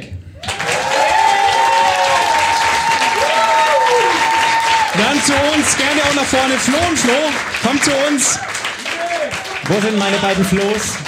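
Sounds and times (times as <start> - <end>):
audience applause: 0.4 - 11.0
speech: 5.2 - 8.6, 9.6 - 11.0.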